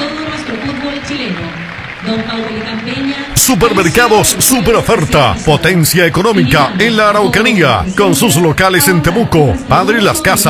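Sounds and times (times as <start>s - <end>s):
stadium crowd applause: 0.0s - 6.3s
speech: 1.0s - 10.4s.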